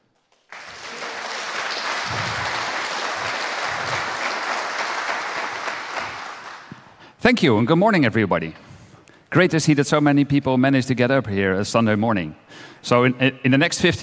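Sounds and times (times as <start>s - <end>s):
audience applause: 0.2s - 7.0s
speech: 7.3s - 8.6s, 9.3s - 14.0s.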